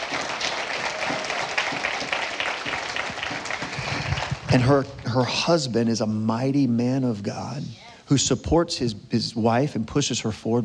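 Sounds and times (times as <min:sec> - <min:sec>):
audience hand clapping: 0:00.0 - 0:05.0
speech: 0:04.5 - 0:10.6.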